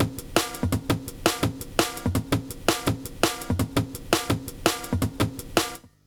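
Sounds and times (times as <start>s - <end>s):
explosive jungle music: 0.0s - 5.8s.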